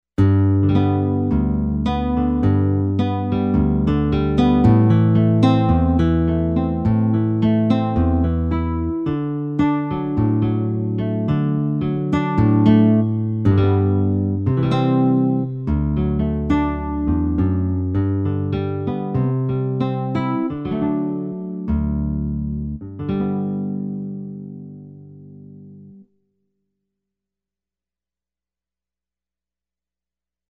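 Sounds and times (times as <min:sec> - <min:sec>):
rosewood guitar playing: 0:00.2 - 0:26.0.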